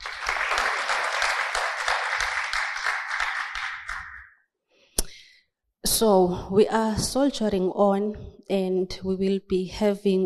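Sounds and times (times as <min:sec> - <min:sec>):
audience applause: 0:00.0 - 0:04.3
speech: 0:06.0 - 0:10.2.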